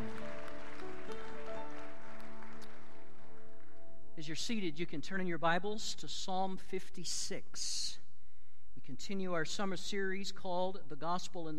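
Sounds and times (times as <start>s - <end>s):
audience hand clapping: 0.0s - 4.1s
speech: 4.2s - 8.0s, 8.9s - 11.5s.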